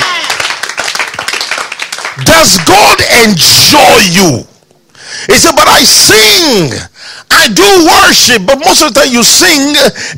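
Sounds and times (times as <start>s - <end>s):
audience clapping: 0.0s - 3.1s
speech: 2.3s - 4.6s, 5.2s - 10.1s.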